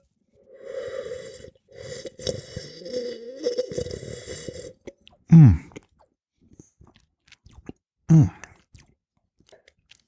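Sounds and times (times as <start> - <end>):
person slurping wine while tasting: 0.4 - 5.9, 8.1 - 8.5.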